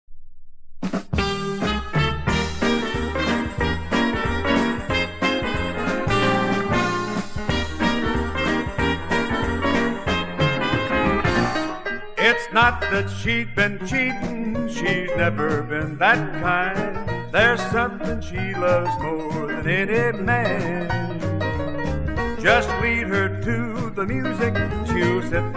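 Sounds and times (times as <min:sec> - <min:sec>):
honky tonk band: 0:01.0 - 0:25.5.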